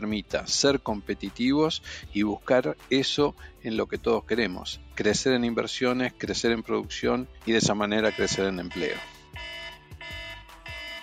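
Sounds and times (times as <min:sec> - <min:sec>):
speech: 0:00.0 - 0:09.5
horn buzzer signal: 0:08.0 - 0:11.0.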